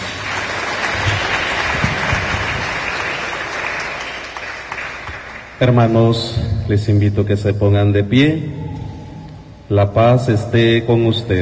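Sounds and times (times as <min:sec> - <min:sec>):
loud crowd applause: 0:00.0 - 0:05.7
speech: 0:05.6 - 0:08.6, 0:09.7 - 0:11.3.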